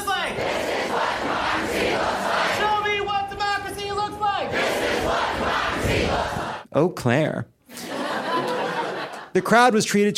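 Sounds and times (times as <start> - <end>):
crowd of rally attendees chanting at the Harris campaign in Eau Claire, Wisconsin: 0.2 - 2.9, 4.4 - 6.7
speech: 6.8 - 7.6, 9.4 - 10.1
laughter: 7.7 - 9.8.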